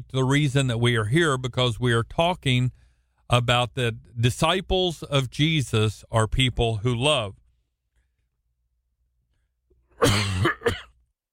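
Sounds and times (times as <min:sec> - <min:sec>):
speech: 0:00.1 - 0:07.4, 0:10.0 - 0:10.5
coughing: 0:09.9 - 0:11.1.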